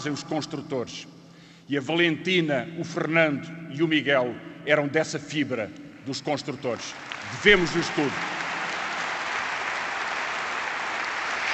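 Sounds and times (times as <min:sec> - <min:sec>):
speech: 0:00.0 - 0:08.3
convention audience applauding in a pavilion: 0:06.8 - 0:11.5.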